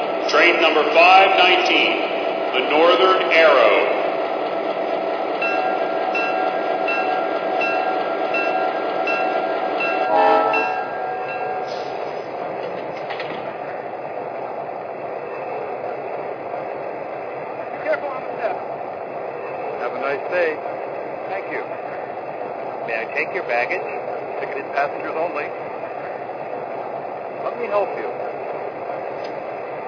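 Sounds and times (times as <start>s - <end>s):
trains: 0.0s - 29.8s.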